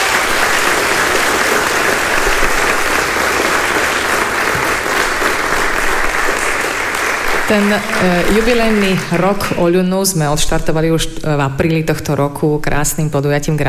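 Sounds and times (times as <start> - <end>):
audience applause: 0.0 - 9.6
speech: 7.5 - 13.6.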